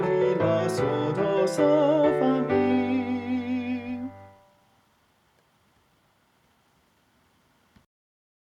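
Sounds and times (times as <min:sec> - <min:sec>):
tenor singing solfege: 0:00.0 - 0:04.6.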